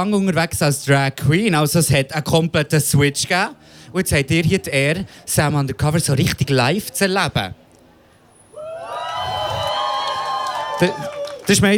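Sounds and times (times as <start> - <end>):
speech: 0.0 - 7.6, 10.8 - 11.7
live audience cheering and clapping: 8.5 - 11.7.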